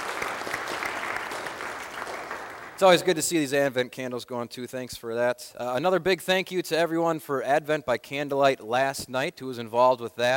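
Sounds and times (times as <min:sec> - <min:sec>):
congregation clapping in a church: 0:00.0 - 0:03.4
speech: 0:02.8 - 0:10.3.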